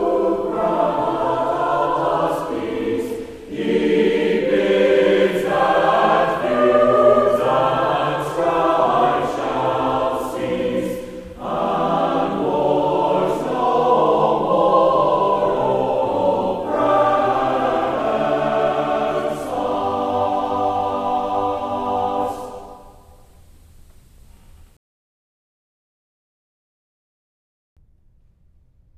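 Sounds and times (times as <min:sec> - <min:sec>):
choir singing: 0:00.0 - 0:23.1.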